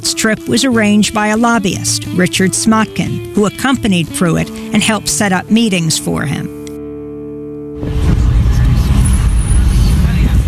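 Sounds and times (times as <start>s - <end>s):
speech: 0.0s - 6.6s, 7.8s - 8.1s
car driving through the streets of Laayoune: 7.8s - 10.4s.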